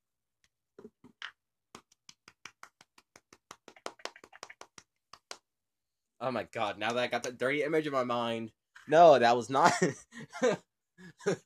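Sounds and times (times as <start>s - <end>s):
light polite golf claps: 1.8s - 5.4s
speech: 6.2s - 11.4s.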